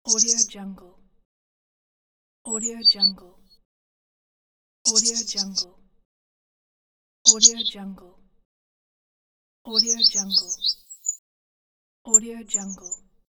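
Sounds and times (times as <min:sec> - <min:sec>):
birds: 0:00.0 - 0:00.6, 0:02.5 - 0:03.2, 0:04.9 - 0:05.7, 0:07.3 - 0:07.8, 0:09.7 - 0:11.2, 0:12.1 - 0:13.0.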